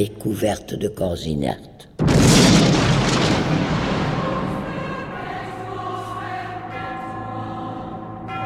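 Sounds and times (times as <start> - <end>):
speech: 0.0 - 2.9
bomb explosion: 2.0 - 5.7.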